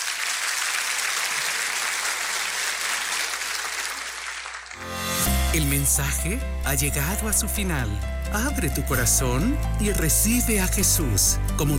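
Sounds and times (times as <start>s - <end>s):
audience applause: 0.0s - 4.9s
speech: 5.5s - 11.7s.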